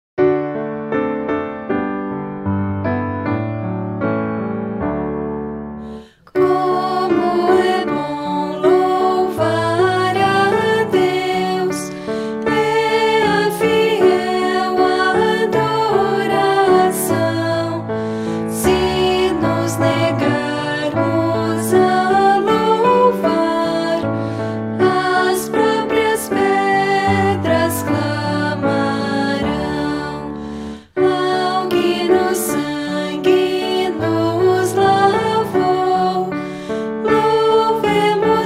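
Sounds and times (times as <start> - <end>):
piano: 0.2 - 38.4
person singing: 6.0 - 38.4.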